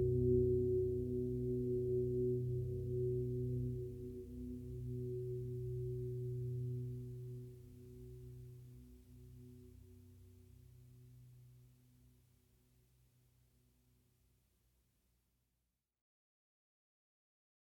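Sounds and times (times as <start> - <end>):
ambient atmosphere music in B minor: 0.0 - 10.1.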